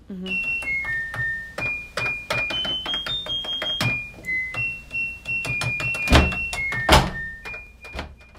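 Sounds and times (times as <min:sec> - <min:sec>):
speech: 0:00.1 - 0:00.7
dull thumps: 0:00.3 - 0:08.2
washing machine electronic beeps playing a melody: 0:00.3 - 0:08.3.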